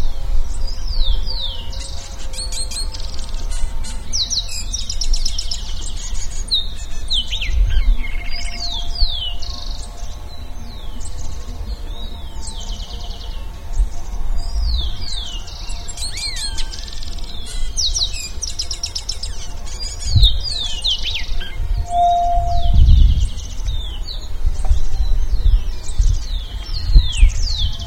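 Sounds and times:
bird singing whistles and trills: 0.8s - 14.0s, 14.7s - 27.8s.

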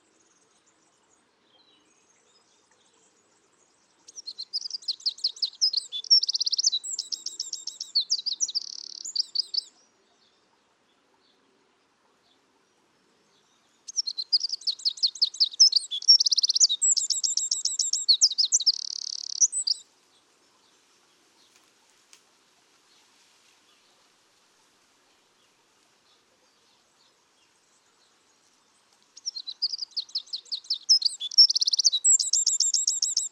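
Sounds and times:
Eurasian wren song: 1.6s - 10.2s, 13.4s - 19.9s, 25.2s - 33.3s.

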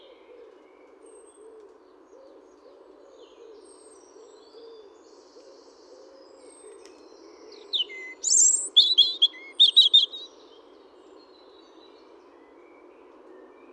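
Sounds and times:
European robin Erithacus rubecula singing: 7.5s - 10.4s.

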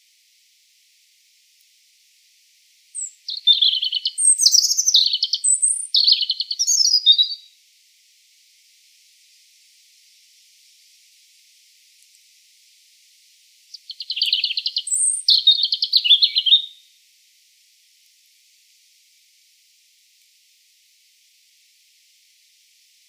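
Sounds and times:
European robin singing: 3.0s - 7.5s, 13.7s - 16.8s.

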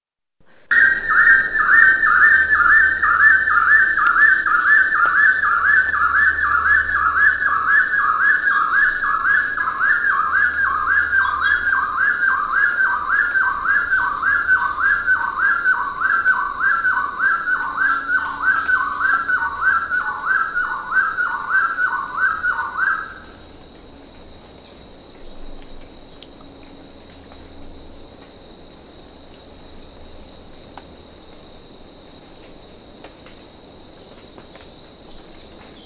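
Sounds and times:
high insect drone: 0.4s - 35.8s
bird whistling calls: 0.7s - 23.2s.

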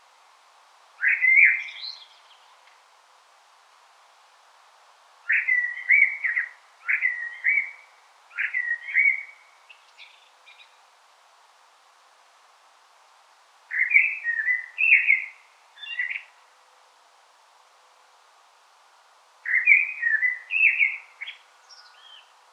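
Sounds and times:
common blackbird singing: 1.0s - 2.5s, 5.3s - 10.8s, 13.7s - 16.3s, 19.5s - 22.4s.

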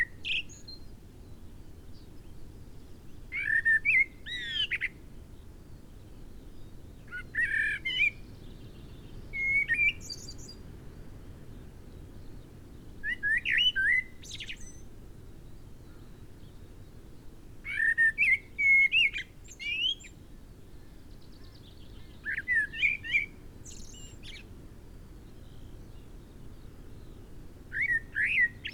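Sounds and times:
soft continuous hiss: 0.0s - 28.7s
Common blackbird singing mellow whistled phrases with scratchy twittering: 3.3s - 5.0s, 7.1s - 8.2s, 8.8s - 10.6s, 13.0s - 14.9s, 17.7s - 20.2s, 22.0s - 24.5s, 27.7s - 28.7s.

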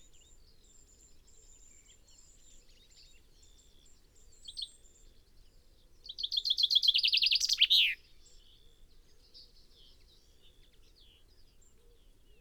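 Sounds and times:
common chaffinch Fringilla coelebs singing: 6.1s - 8.0s.

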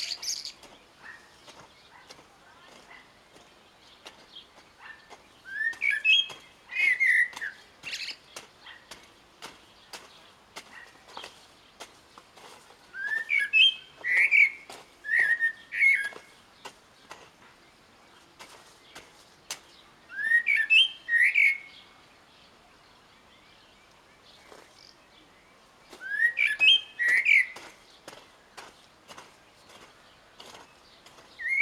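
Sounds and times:
Eurasian blackbird whistled phrases: 5.5s - 7.4s, 13.0s - 16.2s, 20.1s - 21.7s, 26.0s - 27.6s, 31.4s - 31.5s.

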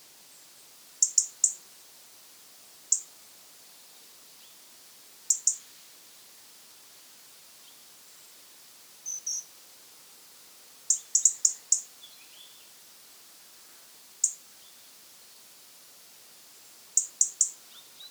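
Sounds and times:
background hiss: 0.0s - 18.1s
European robin ticking calls: 1.0s - 1.6s, 2.9s - 3.1s, 5.3s - 5.6s, 9.0s - 9.5s, 10.9s - 12.5s, 14.2s - 14.4s, 17.0s - 18.1s.

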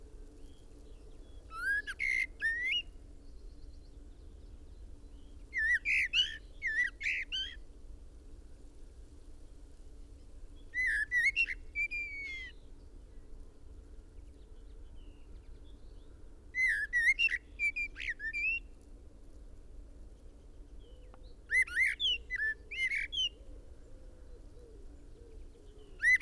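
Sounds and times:
common blackbird whistling: 1.5s - 2.9s, 5.5s - 7.6s, 10.8s - 12.6s, 16.6s - 18.6s, 21.5s - 23.4s, 26.0s - 26.1s.

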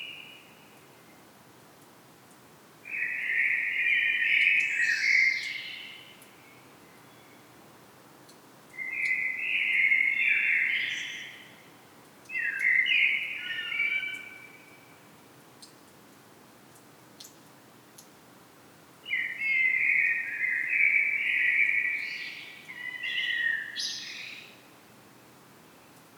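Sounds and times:
common blackbird singing: 2.9s - 6.1s, 8.8s - 11.5s, 12.3s - 14.7s, 19.1s - 24.5s.

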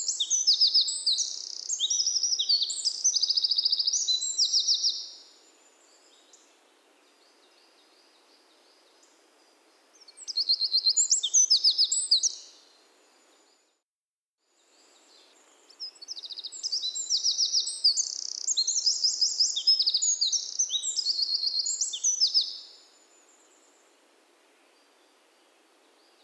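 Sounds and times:
Eurasian wren singing: 0.0s - 5.1s, 10.2s - 12.5s, 16.0s - 22.6s.

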